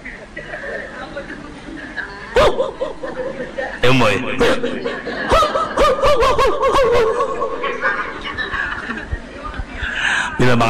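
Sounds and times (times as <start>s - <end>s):
laughter: 0.0s - 10.3s
dog poised to pounce barking: 2.4s - 2.9s, 5.3s - 7.3s
speech: 3.9s - 5.3s, 10.4s - 10.6s.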